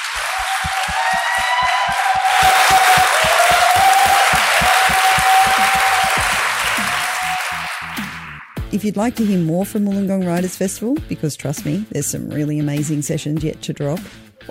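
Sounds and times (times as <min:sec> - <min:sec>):
audience applause: 0:00.0 - 0:08.6
speech: 0:08.8 - 0:14.4.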